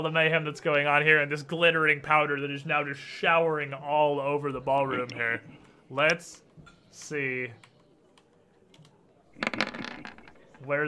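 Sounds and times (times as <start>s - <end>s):
speech: 0.0s - 7.7s, 10.6s - 10.8s
dice rattling in a tabletop race game: 9.4s - 10.7s.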